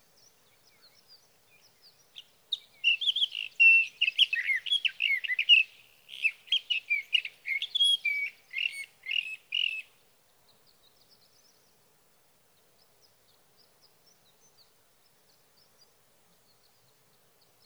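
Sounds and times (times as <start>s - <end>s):
sage thrasher song: 0.2s - 9.9s.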